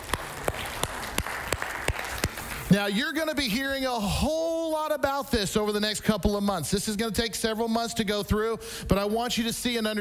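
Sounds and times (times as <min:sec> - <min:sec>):
slow sharp hand claps: 0:00.0 - 0:02.7
speech: 0:02.7 - 0:09.9.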